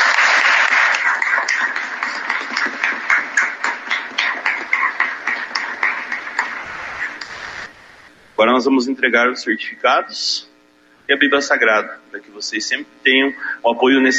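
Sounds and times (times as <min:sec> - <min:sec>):
applause: 0:00.0 - 0:06.6
speech: 0:08.4 - 0:10.5, 0:11.1 - 0:14.1.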